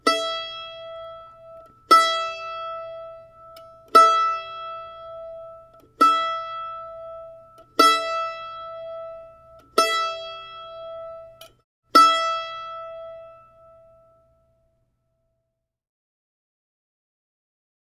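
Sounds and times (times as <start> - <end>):
instrument tuning: 0.0 - 14.2.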